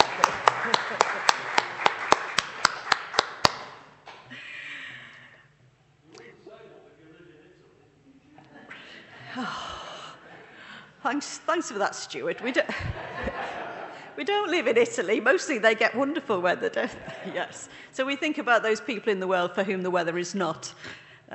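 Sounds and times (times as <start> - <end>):
laughter: 0.0 - 2.2, 8.4 - 10.8, 12.3 - 14.7, 16.6 - 17.8
group clapping: 0.0 - 4.3
speech: 11.1 - 13.4, 14.2 - 21.3.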